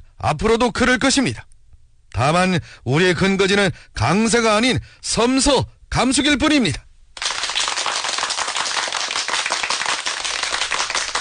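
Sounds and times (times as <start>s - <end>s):
speech: 0.2s - 1.5s, 2.1s - 7.3s
crowd applauding warmly: 7.2s - 11.1s.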